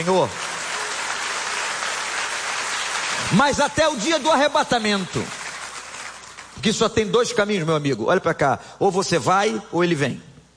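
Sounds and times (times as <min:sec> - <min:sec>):
speech: 0:00.0 - 0:00.4, 0:03.3 - 0:05.4, 0:06.6 - 0:10.3
church congregation applauding during a worship service: 0:00.0 - 0:06.8.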